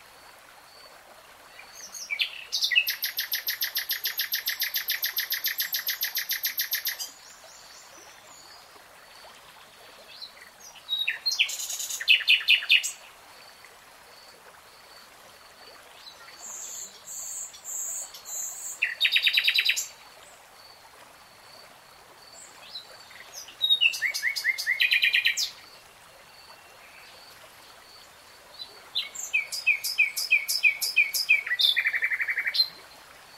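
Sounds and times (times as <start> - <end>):
nightingale song with whistles and chattering notes: 1.6 - 7.7, 10.1 - 13.0, 16.0 - 20.0, 22.4 - 25.6, 28.6 - 32.8.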